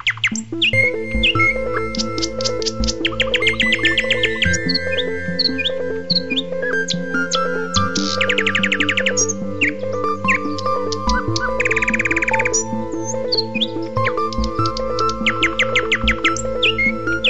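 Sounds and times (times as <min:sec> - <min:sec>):
bird singing whistles and chirps: 0:00.0 - 0:17.2.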